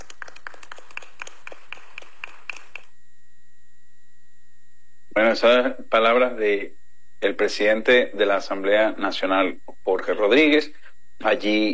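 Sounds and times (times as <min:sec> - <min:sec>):
applause in the assembly hall: 0:00.0 - 0:02.9
speech: 0:05.2 - 0:11.7.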